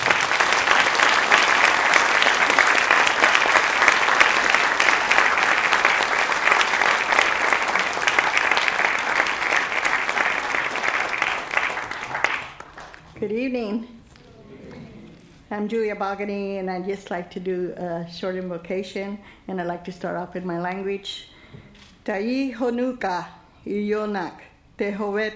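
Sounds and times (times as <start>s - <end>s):
audience applause welcoming two speakers to the stage: 0.0s - 13.1s
speech: 13.3s - 14.0s, 15.5s - 21.3s, 22.1s - 25.3s.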